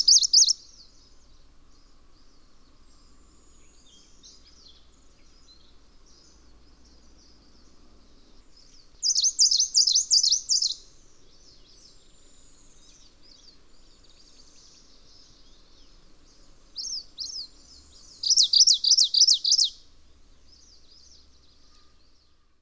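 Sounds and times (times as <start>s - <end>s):
obscuratus bird song trilling: 0.0s - 0.6s, 9.0s - 10.8s, 18.2s - 19.7s.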